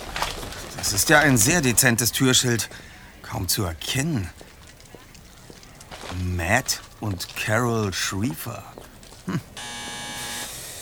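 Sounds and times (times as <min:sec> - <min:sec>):
speech: 0:00.8 - 0:04.4, 0:06.2 - 0:09.8
doorbell buzzer: 0:09.6 - 0:10.6.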